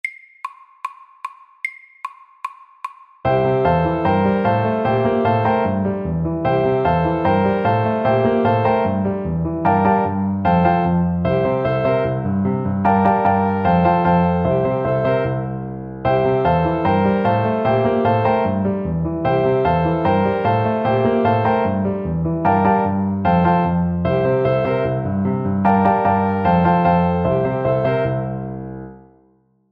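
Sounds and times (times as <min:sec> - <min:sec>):
medium honky tonk music: 0:03.3 - 0:28.8.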